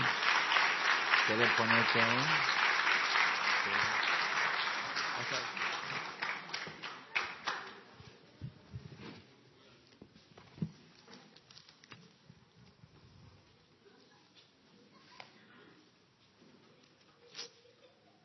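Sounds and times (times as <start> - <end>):
audience applause: 0.0 - 7.9.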